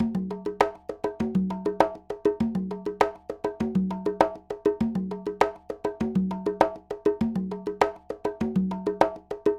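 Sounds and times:
conga Latin percussion: 0.0s - 9.5s.

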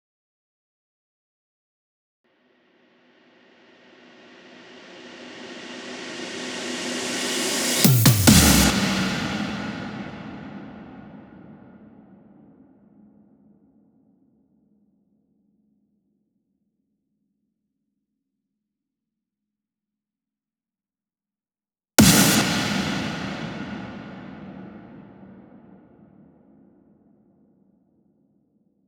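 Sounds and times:
140 BPM intro drum fill: 4.9s - 11.1s, 22.0s - 25.0s.

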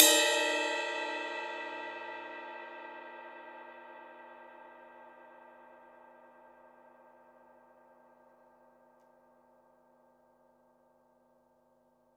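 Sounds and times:
deep house cymbal single hits: 0.0s - 3.2s.

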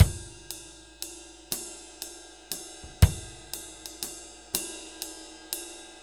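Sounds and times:
laid back 6/8 drum loop: 0.0s - 1.7s, 2.6s - 5.2s.

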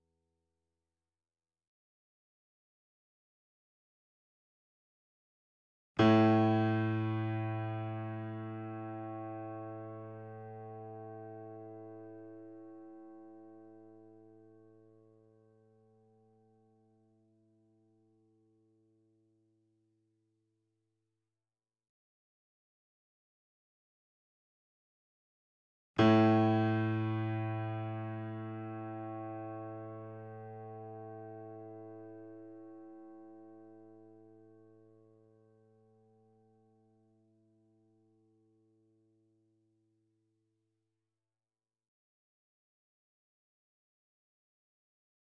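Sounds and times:
grand piano and sampled piano notes: 6.0s - 13.3s, 26.0s - 33.7s.

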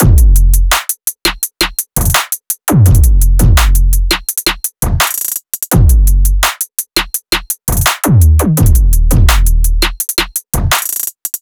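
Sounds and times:
FM synth drums: 0.0s - 0.7s, 2.7s - 5.0s, 5.7s - 6.4s, 7.7s - 10.7s.

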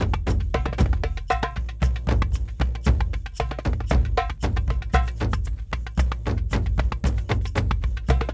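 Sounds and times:
kendong world percussion drum: 0.0s - 8.3s.

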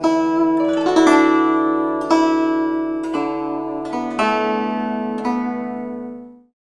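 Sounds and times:
guzheng: 0.0s - 6.5s.

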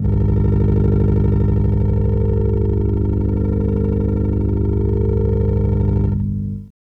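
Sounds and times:
alien engine: 0.0s - 6.7s.

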